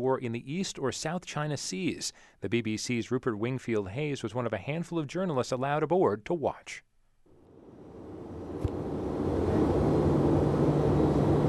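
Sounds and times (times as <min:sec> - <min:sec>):
speech: 0:00.0 - 0:06.9
aircraft engine droning on final approach to USS George Washington carrier: 0:07.5 - 0:11.4.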